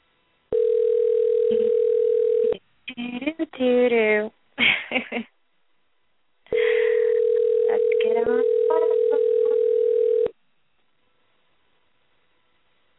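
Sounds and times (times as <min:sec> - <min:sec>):
telephone dial tone: 0:00.5 - 0:02.6, 0:07.0 - 0:10.3
speech: 0:03.6 - 0:05.3.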